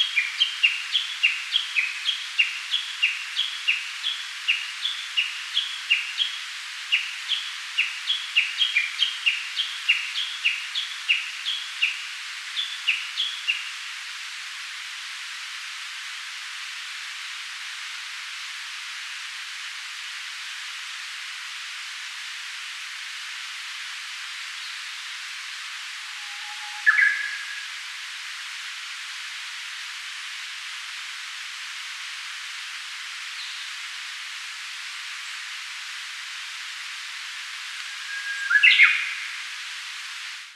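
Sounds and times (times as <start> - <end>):
Cettia diphone: 0.0 - 13.8, 24.6 - 27.8, 37.7 - 39.6.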